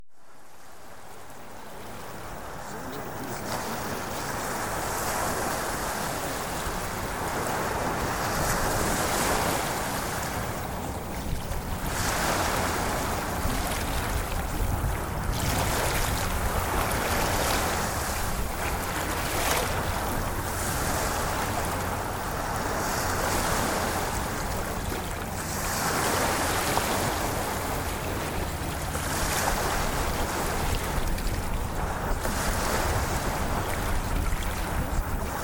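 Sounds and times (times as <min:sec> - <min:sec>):
ocean waves: 0:00.1 - 0:35.4.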